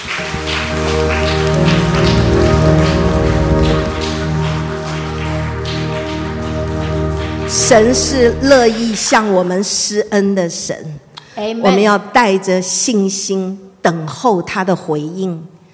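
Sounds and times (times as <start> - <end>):
sustained keyboard chords: 0.0 - 9.4
audience applause: 0.0 - 9.9
speech: 7.7 - 15.5.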